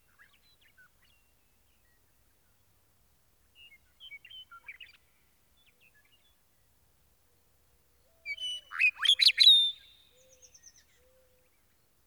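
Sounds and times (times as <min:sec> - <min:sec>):
meadowlark song: 0:08.3 - 0:11.1.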